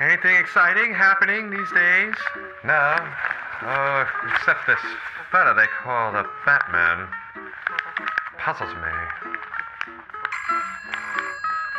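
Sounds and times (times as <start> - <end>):
speech: 0.2 - 7.2, 8.4 - 9.3
telephone ringing with a metallic bell trill: 10.3 - 11.7.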